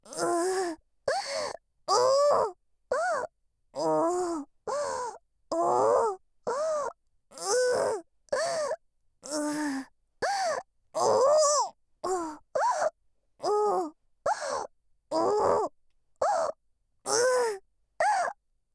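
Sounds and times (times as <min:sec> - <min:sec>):
person moaning and gasping: 0:00.1 - 0:11.4, 0:12.0 - 0:16.5, 0:17.1 - 0:18.3.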